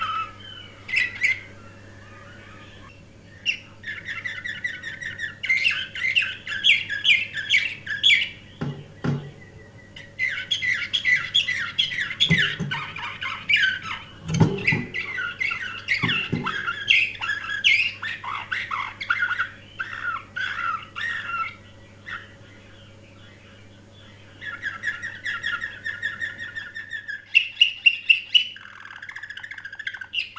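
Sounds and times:
canary singing: 0.0 - 30.3
knocks: 8.6 - 9.4, 12.2 - 12.9.

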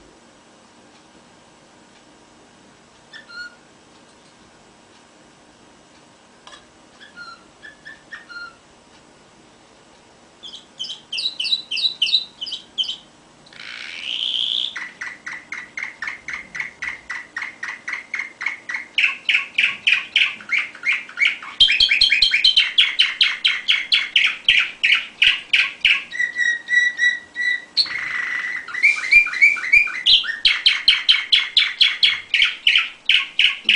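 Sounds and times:
faint steady hum: 0.0 - 33.7
canary singing: 3.1 - 3.7, 7.0 - 8.6, 10.4 - 33.7.

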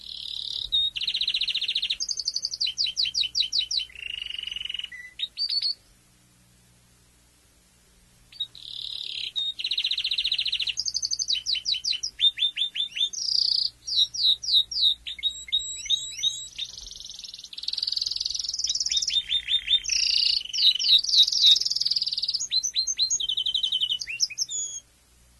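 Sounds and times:
domestic canary singing: 0.0 - 5.9, 8.3 - 24.9
faint low hum: 0.0 - 25.3.

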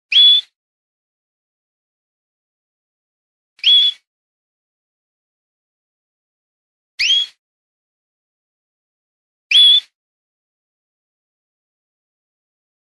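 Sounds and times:
canary song with chirps and fast buzzing trill: 0.1 - 0.6, 3.6 - 4.1, 7.0 - 7.4, 9.5 - 10.0.

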